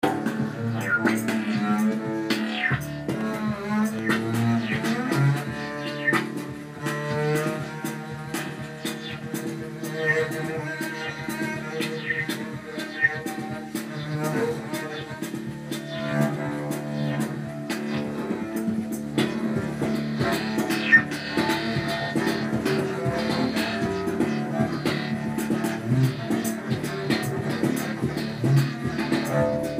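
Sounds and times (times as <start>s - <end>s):
trio playing a hymn: 0.0s - 29.7s.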